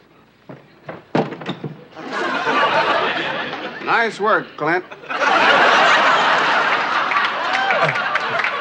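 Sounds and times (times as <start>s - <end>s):
heavy thuds battering a wooden door: 0.5s - 1.8s
laughter: 1.9s - 8.5s
speech: 3.9s - 5.4s.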